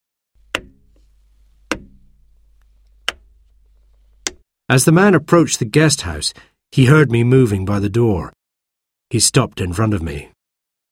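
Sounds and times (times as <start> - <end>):
stick tapping on the ground: 0.5 - 1.1, 1.7 - 2.3, 3.0 - 3.3, 4.2 - 4.4
speech: 4.7 - 8.4, 9.1 - 10.4.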